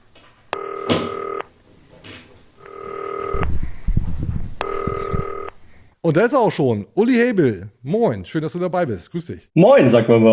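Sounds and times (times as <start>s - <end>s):
soft clunks and handling noises: 0.0s - 3.4s
telephone ringing: 0.5s - 1.6s, 2.5s - 3.5s, 4.6s - 5.6s
speech: 6.1s - 10.3s.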